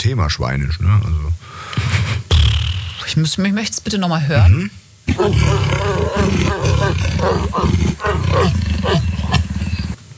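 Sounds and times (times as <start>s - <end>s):
speech: 0.0s - 2.2s, 3.0s - 9.4s
leopard growling: 5.1s - 10.0s.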